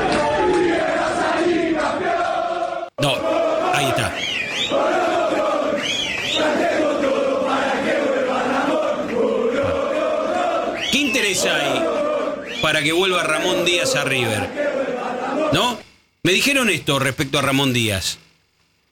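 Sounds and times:
football fans chanting: 0.0s - 16.0s
speech: 3.0s - 4.9s, 12.7s - 14.8s, 15.5s - 18.2s.

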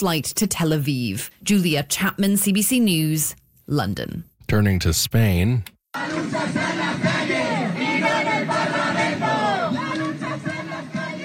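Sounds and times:
speech: 0.0s - 7.6s
thousands of protesters chanting and shouting in Madrid streets: 6.0s - 11.2s.

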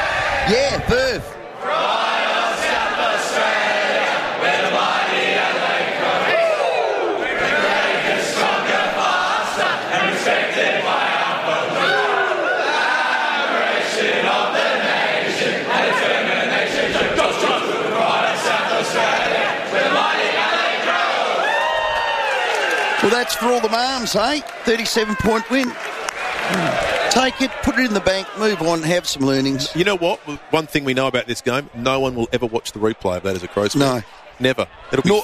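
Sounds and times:
speech: 0.5s - 1.4s, 23.1s - 25.8s, 26.5s - 35.2s
team and mums singing club song: 1.5s - 21.4s
shouts and cheers: 6.3s - 7.4s, 11.8s - 13.3s, 21.0s - 30.4s.

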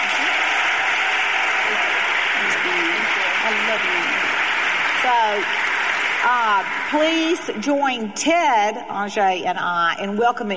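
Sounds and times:
audience applause welcoming a guest: 0.0s - 7.7s
speech: 5.0s - 5.6s, 6.2s - 10.5s.

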